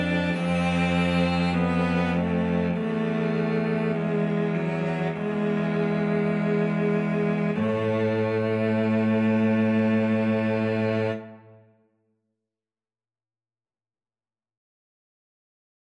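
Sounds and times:
cello trio: 0.0 - 11.6.

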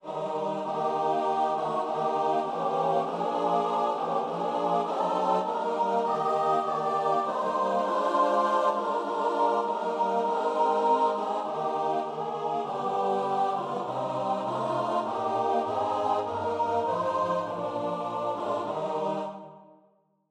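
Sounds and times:
choir singing: 0.0 - 19.8.

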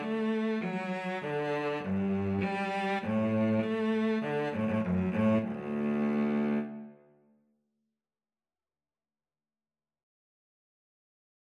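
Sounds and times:
violin and cello duet playing a hymn: 0.0 - 7.0.

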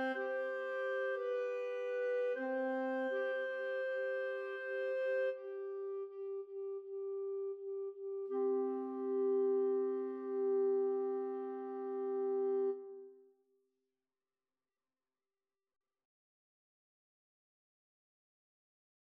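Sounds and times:
clarinet duet: 0.0 - 13.2.

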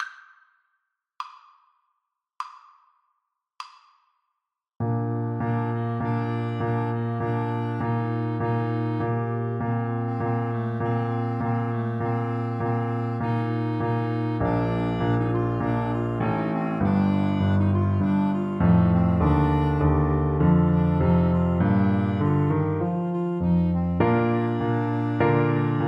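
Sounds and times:
clarinet duet: 4.8 - 25.8.

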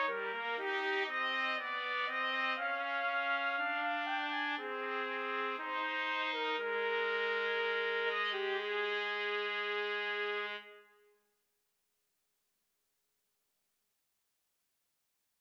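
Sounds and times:
trumpet trio playing a romance: 0.0 - 10.7.

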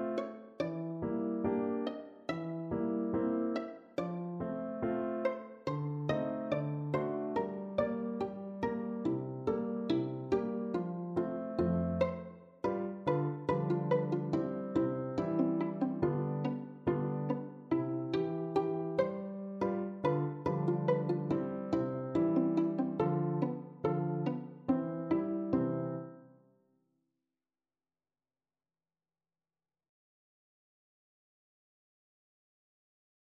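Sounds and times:
pizzicato polka on violin: 0.0 - 26.2.

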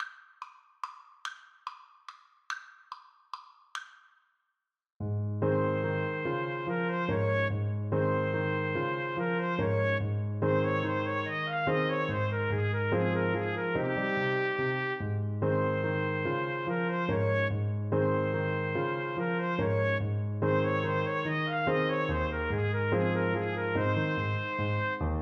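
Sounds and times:
trumpet duet: 5.5 - 25.2.

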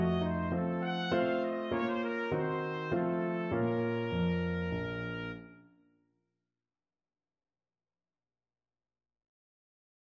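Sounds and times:
trumpet playing a minuet in D minor: 0.0 - 5.6.

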